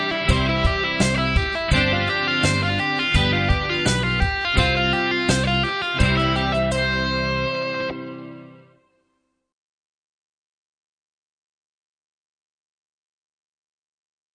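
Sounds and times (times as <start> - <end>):
rock and blues solos: 0.0 - 8.8.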